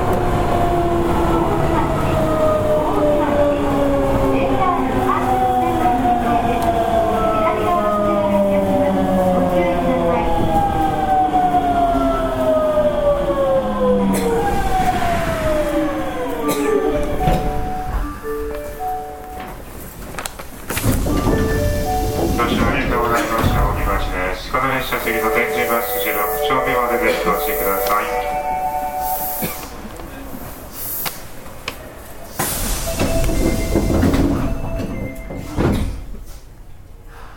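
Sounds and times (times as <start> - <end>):
Osaka subway 66 series train rumble and clacks: 0.0 - 37.3
voices: 1.2 - 10.8, 21.4 - 29.0.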